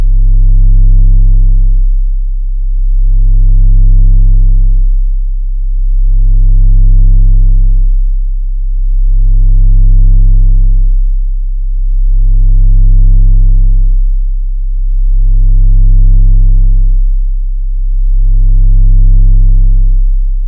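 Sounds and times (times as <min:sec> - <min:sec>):
33 Hz very low bass tone from a vibrating speaker: 0:00.0 - 0:20.4.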